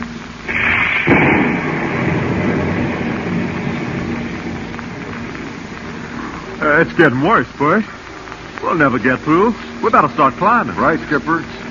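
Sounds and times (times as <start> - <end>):
heavy rain: 0.0 - 11.6
thunder: 0.5 - 6.6
speech: 6.8 - 8.0, 8.6 - 11.6.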